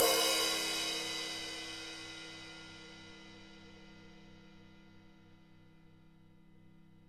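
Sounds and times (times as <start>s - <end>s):
crash cymbal: 0.0s - 4.2s.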